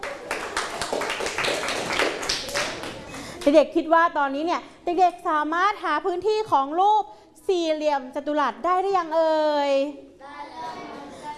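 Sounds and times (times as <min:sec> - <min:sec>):
group of children clapping in a classroom: 0:00.0 - 0:03.4
speech: 0:03.4 - 0:10.4.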